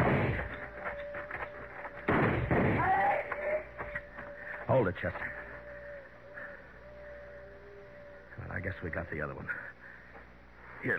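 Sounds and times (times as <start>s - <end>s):
gunshots in a shootout from a radio western drama: 0.0s - 0.5s, 2.1s - 3.0s
speech: 4.8s - 5.4s, 8.8s - 9.8s.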